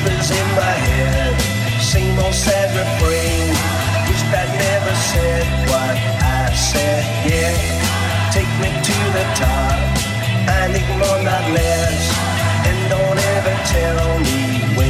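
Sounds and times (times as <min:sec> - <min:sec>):
80s Redrum drum beat: 0:00.0 - 0:14.8.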